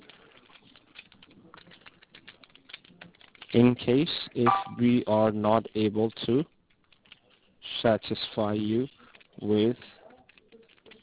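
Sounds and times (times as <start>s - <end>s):
speech: 3.5s - 6.6s, 7.8s - 9.9s
computer keyboard clicks: 4.4s - 4.8s.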